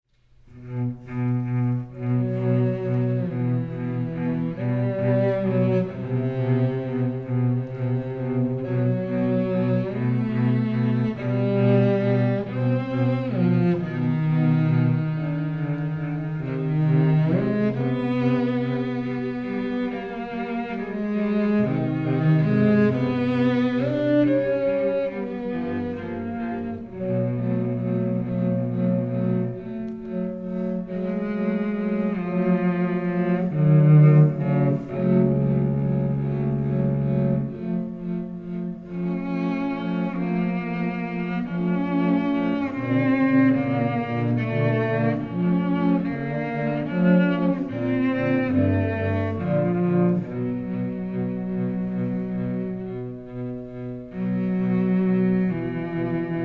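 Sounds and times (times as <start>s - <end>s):
two cellos playing an andante duo: 0.1s - 56.4s.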